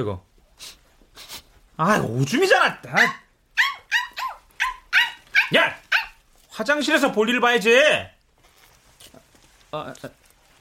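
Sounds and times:
speech: 0.0s - 3.2s, 5.5s - 5.8s, 6.6s - 8.1s, 9.7s - 10.2s
puppy yipping and whimpering: 2.9s - 6.2s.

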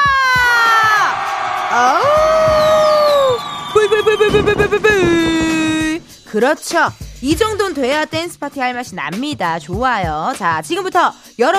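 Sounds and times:
crowd cheering and shouting: 0.0s - 6.0s
speech: 1.8s - 2.2s, 4.1s - 5.5s, 6.3s - 11.5s.

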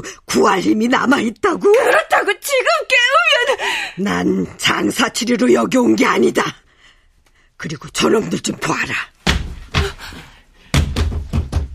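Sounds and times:
speech: 0.0s - 6.6s, 7.6s - 9.2s
heavy pounding on a door: 10.7s - 11.7s.

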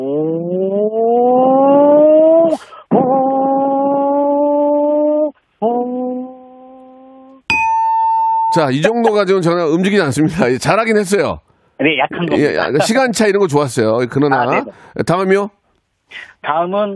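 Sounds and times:
voice imitating a small motorbike pulling away: 0.0s - 7.4s
short high ding: 7.5s - 8.7s
speech: 8.6s - 16.9s.

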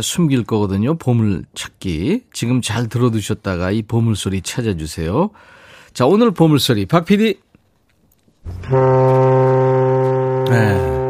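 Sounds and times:
speech: 0.0s - 7.5s, 8.4s - 9.6s, 10.5s - 11.0s
ship's horn blast: 8.5s - 11.0s.

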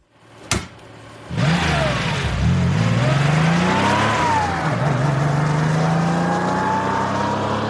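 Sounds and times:
car door shutting: 0.5s - 0.8s
car roaring as it drives off: 1.2s - 7.6s.

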